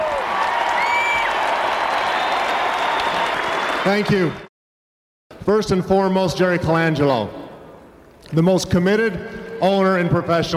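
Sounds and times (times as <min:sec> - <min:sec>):
audience applauding at an honouring ceremony: 0:00.0 - 0:04.5
speech: 0:03.8 - 0:04.4, 0:05.5 - 0:07.4, 0:08.3 - 0:10.5.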